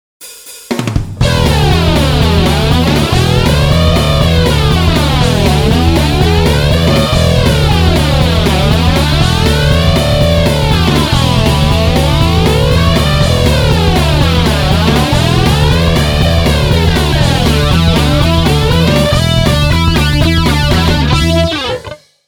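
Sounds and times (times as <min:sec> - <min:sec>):
synth patch demo: 0:01.2 - 0:22.0.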